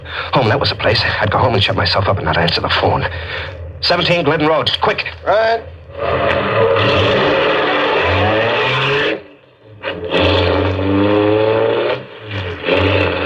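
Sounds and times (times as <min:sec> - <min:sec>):
car engine revving as a car pulls away and accelerates: 0:00.0 - 0:13.2
speech: 0:00.3 - 0:07.2.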